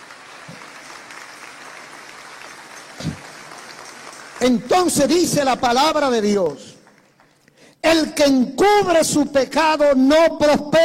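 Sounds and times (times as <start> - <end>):
audience applause: 0.0 - 7.4
speech: 4.4 - 6.7, 7.8 - 10.8.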